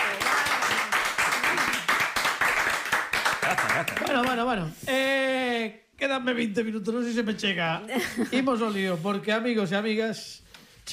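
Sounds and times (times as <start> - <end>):
audience applause: 0.0 - 4.4
speech: 3.5 - 10.9.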